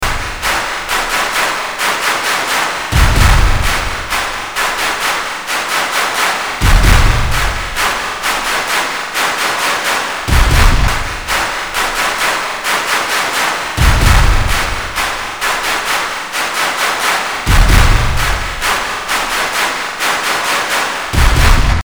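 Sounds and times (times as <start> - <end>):
classic drum beat: 0.0 - 21.8.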